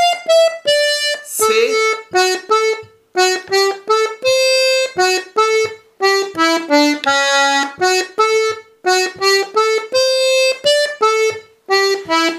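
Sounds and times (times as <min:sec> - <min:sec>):
Scottish paysanne folk dance tune second voice part: 0:00.0 - 0:12.3.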